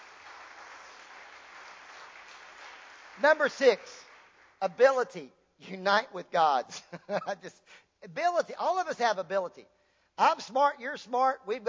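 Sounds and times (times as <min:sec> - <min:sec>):
audience clapping: 0:00.0 - 0:05.0
speech: 0:03.2 - 0:04.0, 0:04.6 - 0:11.6.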